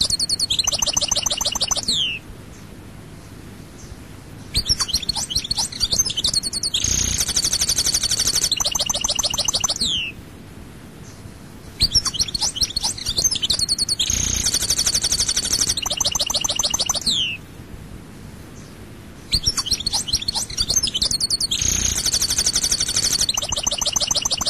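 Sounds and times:
European goldfinch singing: 0.0 - 2.2, 4.5 - 10.2, 11.8 - 17.4, 19.3 - 24.4.

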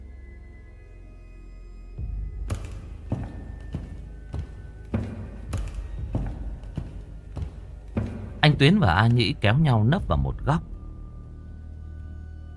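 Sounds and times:
footsteps outside: 2.4 - 9.2
speech: 8.6 - 10.7.

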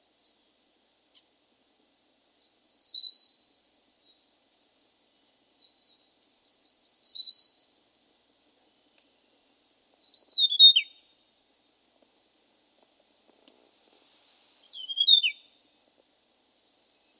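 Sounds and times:
hill prinia chirping and whistled trill: 2.4 - 3.4, 5.2 - 7.7, 9.3 - 11.3, 13.6 - 15.5.

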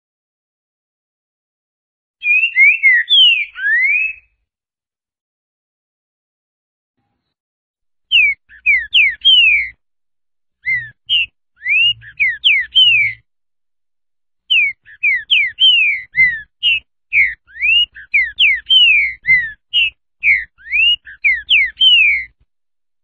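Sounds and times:
green-winged saltator singing slurred falling whistles: 2.2 - 4.4, 8.1 - 9.8, 10.6 - 13.3, 14.5 - 22.4.

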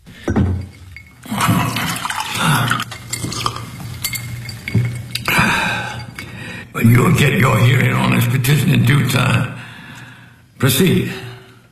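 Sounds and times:
glassy clinks: 0.2 - 6.8
water poured into a glass by a judge in a courtroom: 0.2 - 7.9
speech: 6.8 - 9.6, 10.6 - 11.2.

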